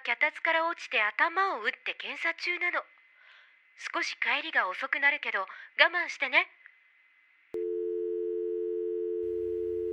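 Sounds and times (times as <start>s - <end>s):
speech: 0.2s - 3.0s, 3.8s - 6.6s
telephone busy tone: 7.6s - 9.9s.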